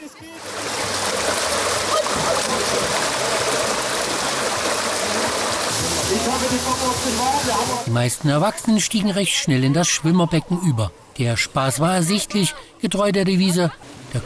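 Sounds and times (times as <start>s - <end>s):
water rushing and splashing at an outdoor swimming pool water slide: 0.0s - 9.4s
speech: 6.3s - 14.2s.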